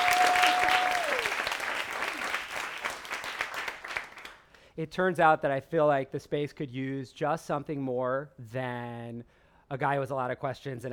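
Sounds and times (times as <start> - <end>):
audience applause: 0.0 - 4.4
speech: 4.8 - 10.9.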